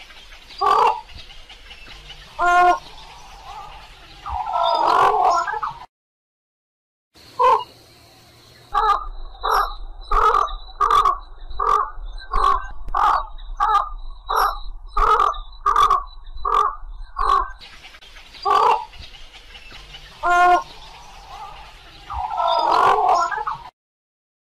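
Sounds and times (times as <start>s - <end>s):
little egret croaking calls: 0.0s - 5.9s, 7.2s - 8.0s, 8.6s - 23.7s.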